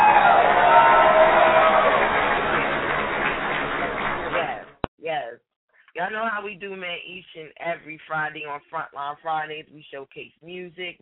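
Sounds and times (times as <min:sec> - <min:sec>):
audience applause: 0:00.0 - 0:04.8
speech: 0:06.1 - 0:11.0.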